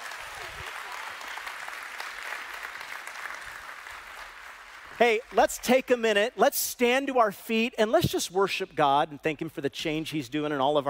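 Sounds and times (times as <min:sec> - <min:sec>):
crowd clapping for a family at a church service: 0:00.0 - 0:06.1
speech: 0:05.0 - 0:10.8.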